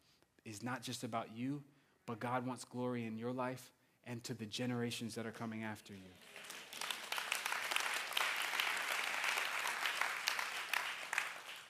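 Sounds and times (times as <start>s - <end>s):
speech: 0.5s - 6.6s
audience applause: 6.2s - 11.6s.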